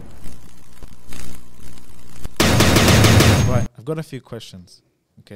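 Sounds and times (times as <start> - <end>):
machine-gun fire in a rapid-fire jingle: 2.4 - 3.7
speech: 3.9 - 5.3.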